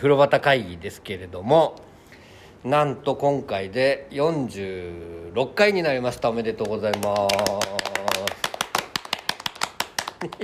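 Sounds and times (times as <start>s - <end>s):
speech: 0.0s - 1.9s, 2.6s - 7.9s, 10.2s - 10.4s
hand clapping: 6.5s - 10.4s.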